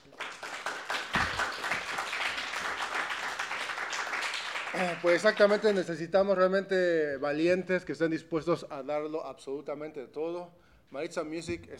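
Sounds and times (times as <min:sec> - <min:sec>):
audience applause: 0:00.0 - 0:05.9
speech: 0:04.8 - 0:11.7.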